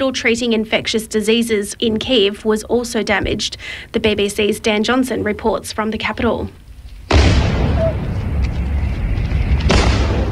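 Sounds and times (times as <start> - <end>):
speech: 0.0 - 6.6
explosions during a Russian attack on Kyiv at night: 7.1 - 10.3.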